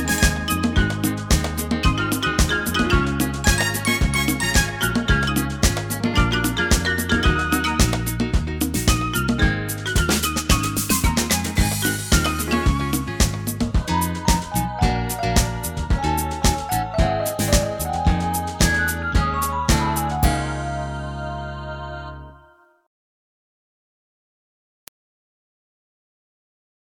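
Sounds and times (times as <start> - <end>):
samba keyboard preset rhythm: 0.0 - 21.0.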